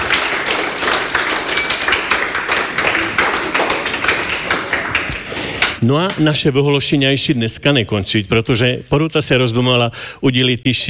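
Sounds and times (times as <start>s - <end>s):
audience applause at an award ceremony: 0.0s - 5.8s
speech: 5.8s - 10.8s.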